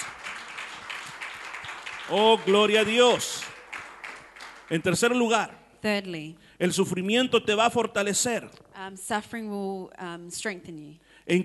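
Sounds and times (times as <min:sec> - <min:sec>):
audience applause: 0:00.0 - 0:05.2
speech: 0:02.1 - 0:03.4, 0:04.7 - 0:11.4.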